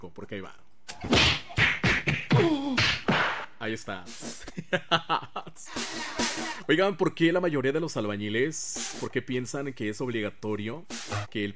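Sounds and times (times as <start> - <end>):
speech: 0.0 - 3.0, 3.6 - 11.5
heavy whooshing punch sound effects: 1.0 - 3.5.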